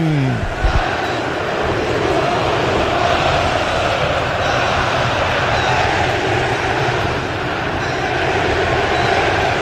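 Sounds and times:
football stadium crowd roar at Mineirão: 0.0s - 9.5s.

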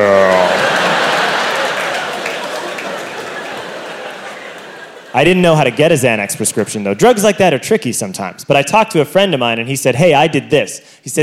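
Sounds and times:
soft audience clapping: 0.0s - 5.2s
laughter: 0.0s - 7.4s
speech: 5.2s - 11.2s.

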